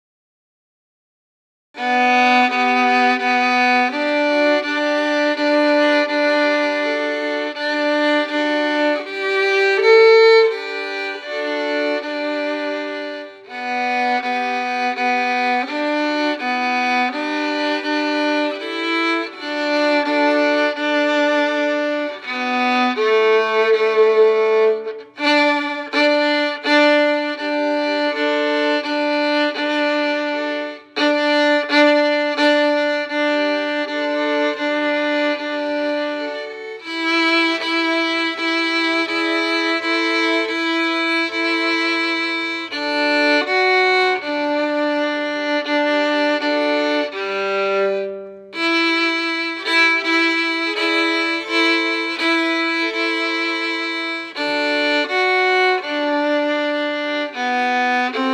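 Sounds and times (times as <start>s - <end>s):
violin playing a carol: 1.8s - 58.3s.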